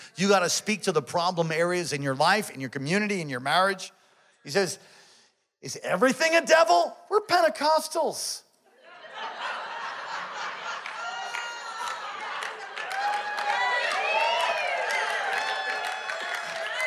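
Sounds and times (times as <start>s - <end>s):
speech: 0.2s - 5.0s, 5.6s - 8.4s
crowd laughing: 8.7s - 13.9s
crowd cheering and whooping: 8.8s - 16.8s
audience clapping: 10.3s - 16.8s.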